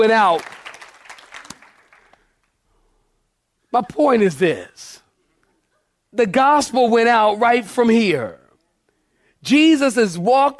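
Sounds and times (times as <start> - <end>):
speech: 0.0 - 0.6, 3.7 - 5.0, 6.1 - 8.4, 9.4 - 10.5
audience clapping hands: 0.0 - 2.6.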